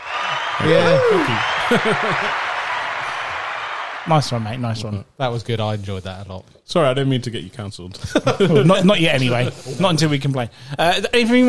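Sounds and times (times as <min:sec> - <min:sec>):
applause sound effect: 0:00.0 - 0:04.5
speech: 0:00.6 - 0:02.5, 0:04.0 - 0:11.4
voiced laugh-like bursts: 0:01.3 - 0:02.4.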